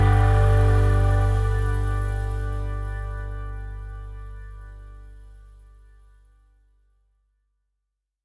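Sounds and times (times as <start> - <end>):
Christmas song: 0.0 - 5.4.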